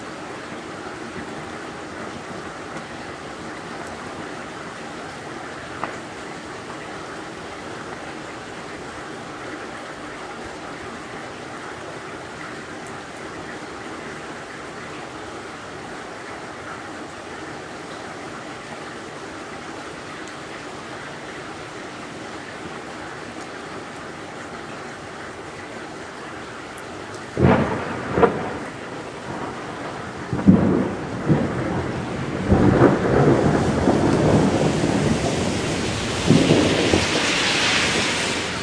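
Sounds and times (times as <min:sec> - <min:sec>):
morning thunderstorm: 0:27.4 - 0:38.6.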